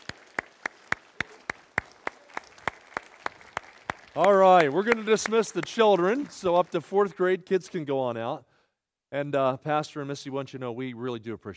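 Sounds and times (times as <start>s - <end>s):
audience applauding: 0.0s - 7.9s
speech: 4.2s - 8.5s, 9.1s - 11.5s.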